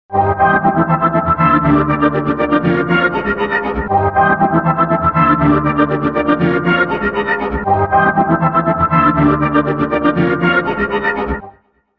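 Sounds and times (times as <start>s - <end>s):
orchestra playing: 0.1s - 11.4s.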